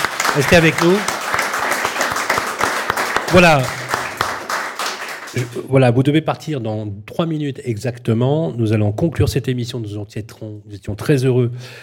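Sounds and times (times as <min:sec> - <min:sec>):
audience applause: 0:00.0 - 0:05.6
speech: 0:00.4 - 0:01.1, 0:03.3 - 0:03.8, 0:05.3 - 0:11.8.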